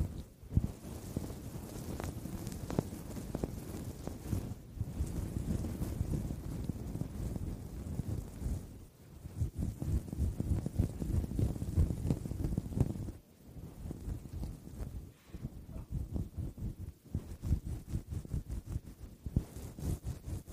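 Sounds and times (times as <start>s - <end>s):
foam-covered microphone scratched and brushed: 0.0s - 20.5s.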